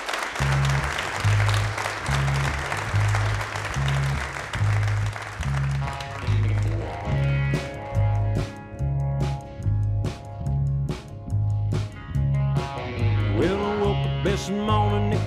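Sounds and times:
audience applauding: 0.0s - 7.8s
band's low pulsing bass notes: 0.4s - 15.2s.

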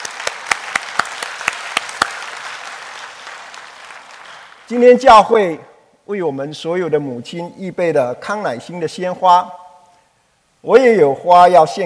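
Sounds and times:
applause: 0.0s - 4.7s
speech: 4.7s - 9.6s, 10.6s - 11.8s.

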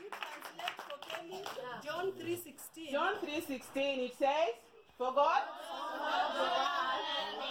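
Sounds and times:
audience clapping: 0.0s - 4.2s
speech: 1.3s - 7.4s.

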